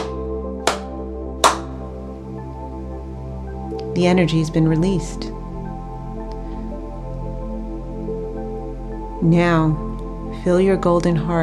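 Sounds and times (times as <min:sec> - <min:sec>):
hands clapping: 0:00.0 - 0:01.8
speech: 0:04.0 - 0:05.4, 0:09.2 - 0:11.4.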